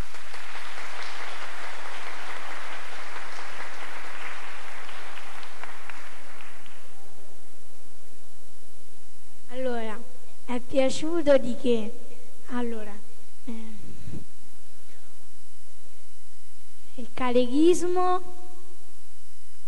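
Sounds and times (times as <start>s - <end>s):
crowd applause: 0.0s - 7.0s
speech: 10.8s - 12.9s, 17.3s - 18.3s.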